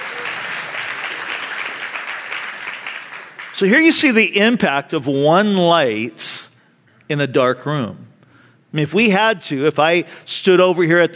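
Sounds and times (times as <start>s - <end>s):
audience clapping: 0.0s - 4.0s
speech: 3.6s - 6.4s, 7.1s - 8.1s, 8.7s - 11.1s.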